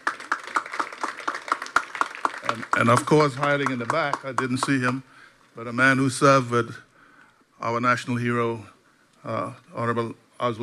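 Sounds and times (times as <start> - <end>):
audience clapping in steady rhythm at a formal gathering: 0.0 - 5.1
speech: 2.5 - 6.9, 7.6 - 10.6.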